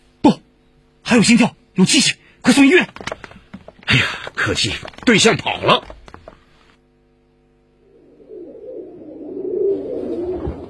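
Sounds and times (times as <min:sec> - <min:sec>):
speech: 0:01.1 - 0:03.3, 0:03.9 - 0:06.0
pigeons cooing: 0:07.8 - 0:10.6.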